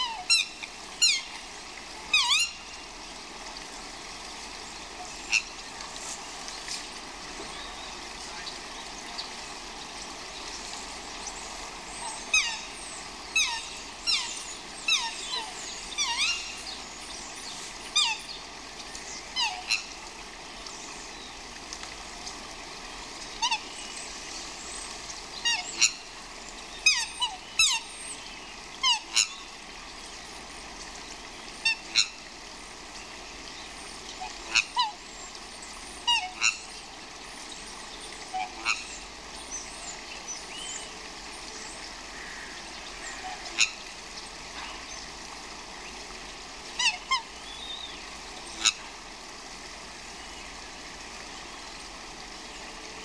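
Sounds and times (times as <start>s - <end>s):
swans squawking: 0.0s - 1.4s, 2.0s - 2.6s, 11.9s - 16.8s, 19.3s - 19.9s, 23.4s - 23.8s, 25.4s - 26.2s, 26.8s - 27.9s, 28.8s - 29.4s, 36.0s - 36.7s, 38.2s - 39.0s, 42.2s - 43.8s, 46.7s - 47.8s, 48.4s - 48.9s
running water: 0.0s - 53.0s.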